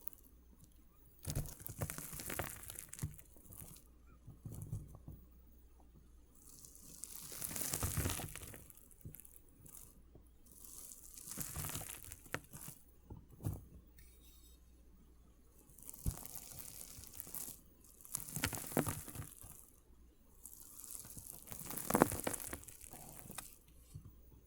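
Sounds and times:
water beads crushed, wet crackling and popping: 0:00.0 - 0:03.9, 0:06.4 - 0:12.8, 0:15.7 - 0:23.8.

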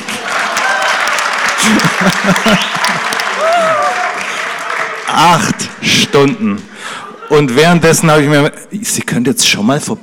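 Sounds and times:
audience applause: 0:00.0 - 0:06.4
laughter: 0:01.4 - 0:04.6, 0:05.5 - 0:08.0
speech: 0:01.6 - 0:03.8, 0:05.1 - 0:06.7, 0:07.3 - 0:10.0
scattered voices and whoops: 0:03.4 - 0:04.2.

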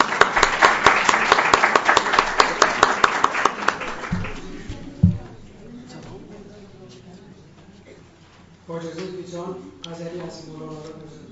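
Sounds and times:
audience clapping: 0:00.0 - 0:05.0.

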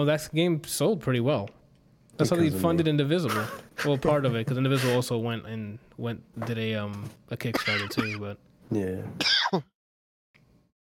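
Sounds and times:
speech: 0:00.0 - 0:01.6, 0:02.2 - 0:09.7
person coughing into the microphone: 0:07.5 - 0:08.3, 0:09.2 - 0:09.7.

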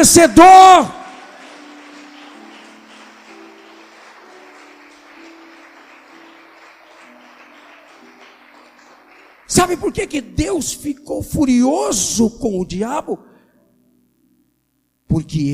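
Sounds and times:
speech: 0:00.0 - 0:01.0, 0:09.5 - 0:13.3, 0:15.1 - 0:15.5
audience applauding: 0:00.8 - 0:10.2.

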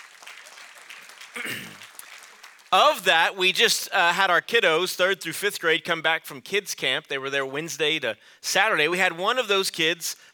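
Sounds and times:
audience applause: 0:00.0 - 0:03.2
speech: 0:01.4 - 0:01.7, 0:02.7 - 0:10.3.

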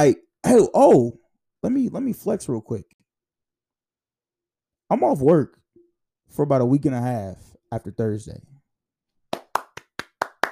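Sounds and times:
speech: 0:00.0 - 0:03.0, 0:04.9 - 0:05.6, 0:06.3 - 0:08.5
person clapping: 0:09.3 - 0:10.5.

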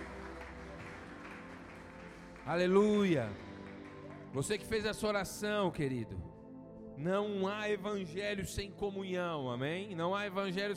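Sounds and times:
church congregation applauding: 0:00.0 - 0:06.1
speech: 0:02.4 - 0:03.5, 0:04.4 - 0:06.3, 0:07.0 - 0:10.7.

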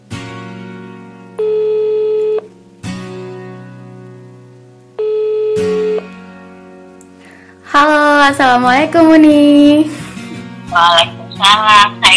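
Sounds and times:
telephone call ringing tone: 0:01.4 - 0:02.5, 0:05.0 - 0:06.0
speech: 0:07.7 - 0:10.0, 0:10.7 - 0:12.1.

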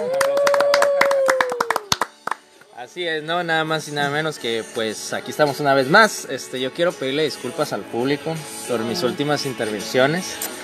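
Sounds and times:
clapping: 0:00.0 - 0:02.7
speech: 0:02.8 - 0:10.6.

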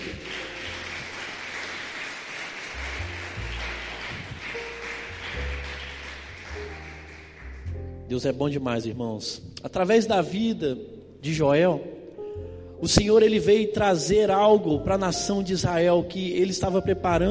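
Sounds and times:
audience applauding: 0:00.0 - 0:07.8
speech: 0:08.1 - 0:11.9, 0:12.8 - 0:17.2.

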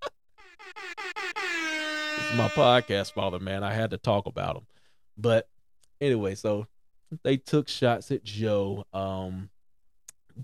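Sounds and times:
air horn: 0:00.4 - 0:03.4
speech: 0:02.2 - 0:09.5.

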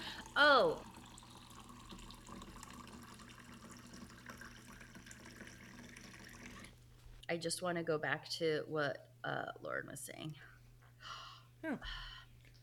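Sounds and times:
wine pouring from a box spout into a glass: 0:00.0 - 0:06.8
speech: 0:00.4 - 0:00.9, 0:07.3 - 0:10.5, 0:11.6 - 0:12.1.

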